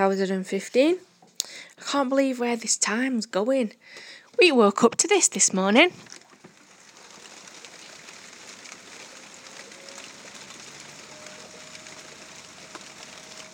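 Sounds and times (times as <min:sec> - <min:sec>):
speech: 0:00.0 - 0:06.2
rain: 0:06.0 - 0:13.5
road sweeper outside in the rain: 0:07.4 - 0:13.5.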